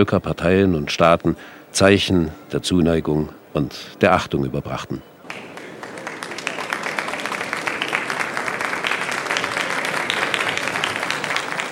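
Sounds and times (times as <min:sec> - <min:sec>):
speech: 0:00.0 - 0:05.5
guests applauding in a hall: 0:05.2 - 0:11.6.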